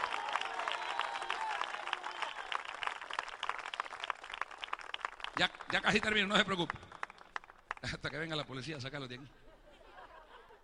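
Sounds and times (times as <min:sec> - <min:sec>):
audience applauding: 0:00.0 - 0:08.2
speech: 0:05.4 - 0:06.9, 0:07.8 - 0:09.4
laughter: 0:09.3 - 0:10.6.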